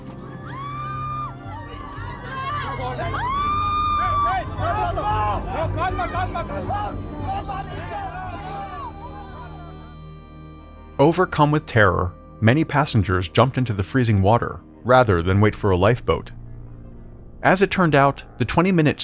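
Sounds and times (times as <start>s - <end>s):
panicked crowd screaming on sinking ship: 0.2s - 10.1s
speech: 5.7s - 8.0s, 11.0s - 16.4s, 17.4s - 19.0s.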